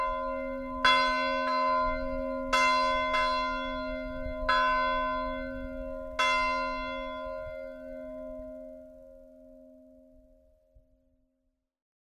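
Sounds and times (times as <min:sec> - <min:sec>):
funeral bell tolling: 0:00.0 - 0:08.8.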